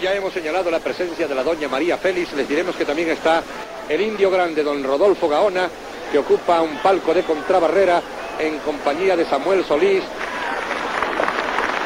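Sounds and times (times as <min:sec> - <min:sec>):
speech: 0:00.0 - 0:10.6
bullring crowd ovation: 0:05.8 - 0:11.8.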